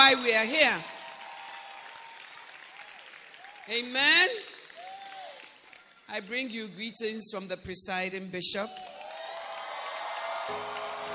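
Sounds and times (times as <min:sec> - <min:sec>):
speech: 0:00.1 - 0:01.0, 0:03.7 - 0:04.5, 0:06.1 - 0:09.0, 0:10.5 - 0:10.9
audience applause: 0:01.0 - 0:03.7, 0:04.4 - 0:06.1, 0:08.8 - 0:11.1.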